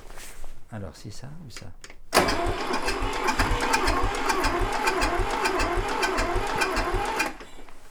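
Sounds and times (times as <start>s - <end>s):
speech: 0.8s - 5.4s
engine of a driven machine running: 2.2s - 7.4s.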